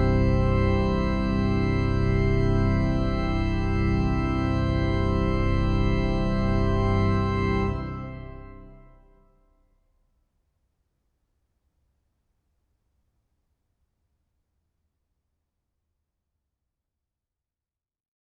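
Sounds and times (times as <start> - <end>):
organ playing canons: 0.0 - 9.1.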